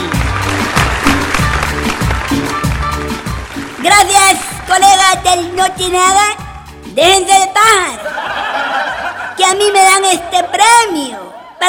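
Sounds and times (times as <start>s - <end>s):
applause: 0.0s - 5.3s
speech: 3.8s - 6.4s, 7.0s - 8.3s, 9.4s - 11.6s
laughter: 7.9s - 9.8s.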